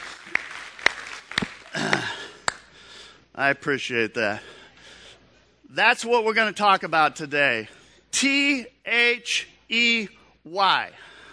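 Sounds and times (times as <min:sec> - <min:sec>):
church audience applause: 0:00.0 - 0:02.6
speech: 0:03.4 - 0:04.5, 0:05.7 - 0:11.1.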